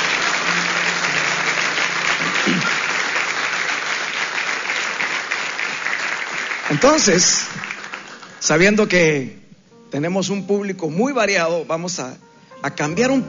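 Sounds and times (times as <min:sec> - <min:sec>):
audience applauding: 0:00.0 - 0:08.8
speech: 0:06.8 - 0:07.6, 0:08.4 - 0:13.2.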